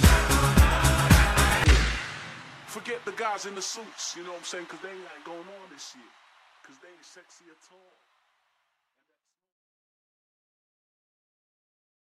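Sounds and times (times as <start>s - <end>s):
trance remix: 0.0s - 3.4s.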